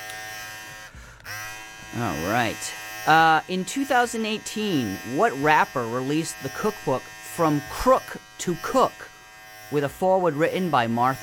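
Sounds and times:
electric hair clippers buzzing while cutting hair: 0.0s - 11.2s
speech: 1.9s - 9.1s, 9.7s - 11.2s.

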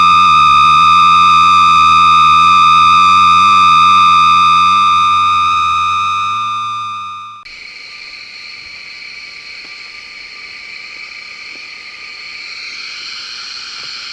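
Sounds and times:
railroad switch gas-jet de-icing mechanism in Northampton MA: 0.0s - 7.4s.

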